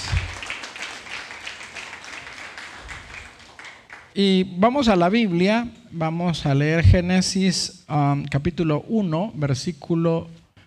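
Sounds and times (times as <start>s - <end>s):
audience applause: 0.0s - 4.1s
speech: 4.2s - 10.4s.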